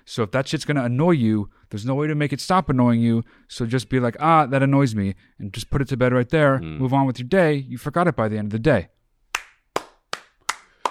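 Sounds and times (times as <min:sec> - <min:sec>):
speech: 0:00.1 - 0:09.0
hand clapping: 0:09.4 - 0:10.8.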